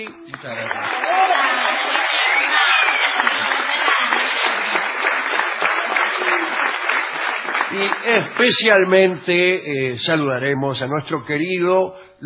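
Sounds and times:
speech: 0:00.0 - 0:01.2, 0:07.7 - 0:12.2
audience ovation: 0:00.0 - 0:09.4.

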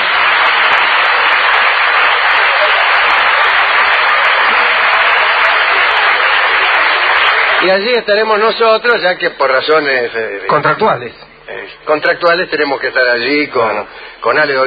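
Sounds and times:
audience applause: 0:00.0 - 0:07.9
speech: 0:07.6 - 0:14.6.

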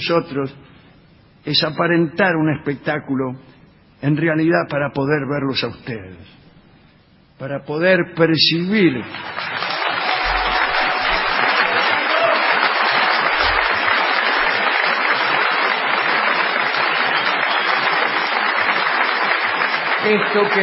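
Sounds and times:
speech: 0:00.0 - 0:00.8, 0:01.4 - 0:06.4, 0:07.4 - 0:09.5, 0:20.1 - 0:20.6
audience applause at the end of a theatre show: 0:09.1 - 0:20.6.

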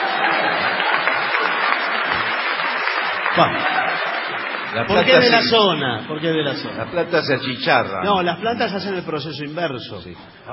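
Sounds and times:
audience applause: 0:00.0 - 0:07.9
speech: 0:03.4 - 0:03.8, 0:04.7 - 0:10.5.

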